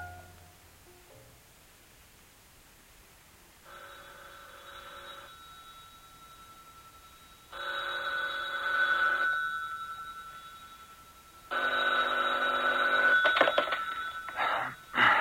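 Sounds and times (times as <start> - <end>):
telephone ringing: 3.6 - 15.1
sharp clicks and clatters: 13.2 - 14.4.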